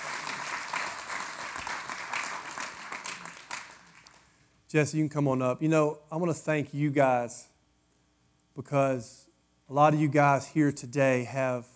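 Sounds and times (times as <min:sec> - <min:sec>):
audience applauding: 0:00.0 - 0:04.3
speech: 0:04.7 - 0:07.5, 0:08.6 - 0:11.7.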